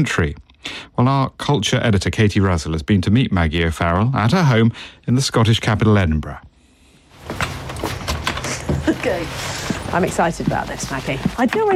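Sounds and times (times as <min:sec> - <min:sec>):
speech: 0:00.0 - 0:06.5, 0:09.0 - 0:11.7
locked door being opened into a basement: 0:07.2 - 0:11.7.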